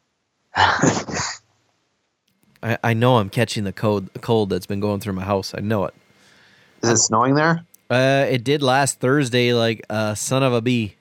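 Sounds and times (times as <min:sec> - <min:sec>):
harsh rasping throat clearing: 0:00.6 - 0:01.5
speech: 0:00.8 - 0:01.1, 0:02.6 - 0:06.0, 0:06.8 - 0:11.0.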